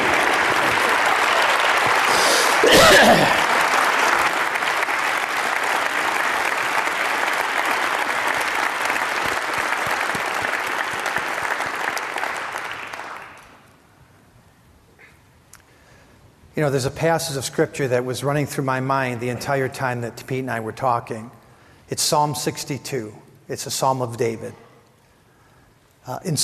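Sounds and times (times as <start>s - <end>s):
audience applause: 0.0s - 13.7s
speech: 16.6s - 24.6s, 26.0s - 26.4s.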